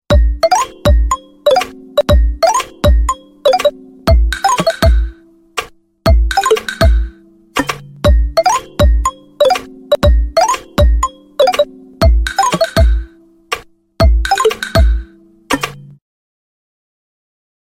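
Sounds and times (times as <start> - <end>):
Lumia 1020 ringtone: 0.1 - 5.2, 6.1 - 7.2, 8.1 - 13.2, 14.0 - 15.1.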